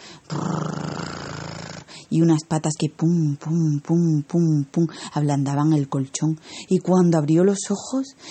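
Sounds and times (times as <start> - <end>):
giant cat purring: 0.3 - 1.9
speech: 2.1 - 8.2.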